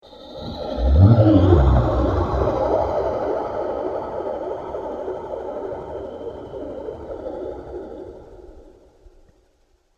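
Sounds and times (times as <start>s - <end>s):
science fiction space beast: 0.5s - 3.2s.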